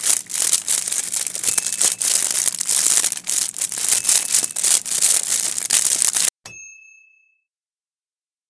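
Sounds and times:
fire: 0.0s - 6.3s.

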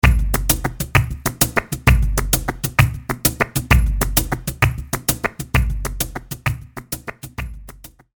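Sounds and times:
sevillanas music: 0.0s - 8.1s.

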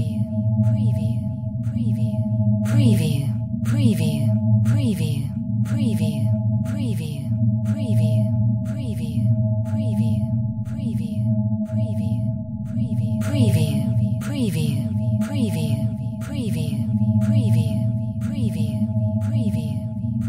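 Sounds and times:
low frequency vent ghost pulse drone: 0.0s - 20.2s.

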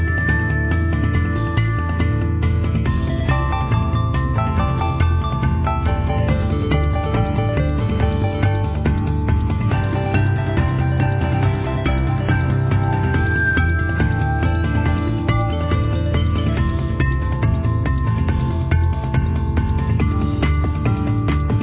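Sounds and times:
pop dance bells: 0.0s - 21.6s.

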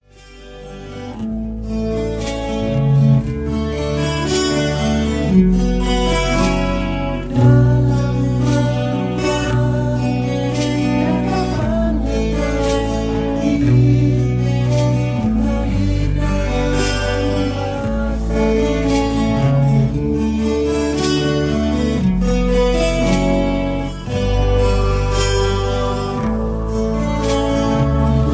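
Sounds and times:
karaoke minus one backing track: 0.2s - 28.3s.

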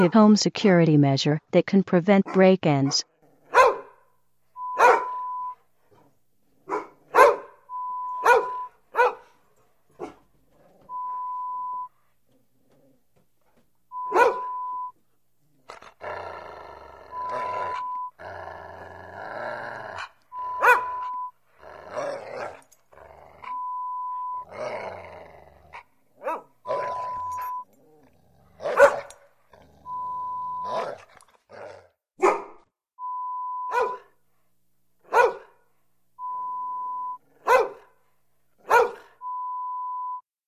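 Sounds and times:
speech: 0.0s - 3.1s
dogs barking inside a home: 2.9s - 4.0s, 4.7s - 5.3s, 6.6s - 7.6s, 8.2s - 9.4s, 10.0s - 10.3s, 14.0s - 14.6s, 20.4s - 21.2s, 26.2s - 27.6s, 28.6s - 29.2s, 32.2s - 32.6s, 33.7s - 34.1s, 35.0s - 35.6s, 37.4s - 38.0s, 38.6s - 39.2s
dogs growling and grunting: 12.2s - 13.1s, 15.4s - 23.6s, 24.3s - 32.4s.

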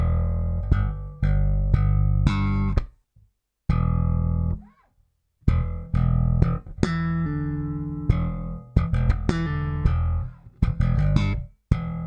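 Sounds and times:
slap bass line in E minor: 0.0s - 3.0s, 3.7s - 4.8s, 5.4s - 12.0s.

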